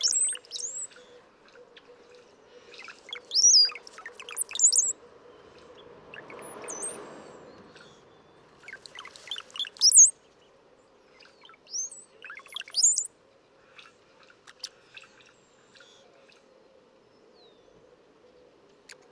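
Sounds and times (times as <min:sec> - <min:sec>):
brown-headed cowbird song: 0:00.0 - 0:10.6, 0:11.2 - 0:13.1.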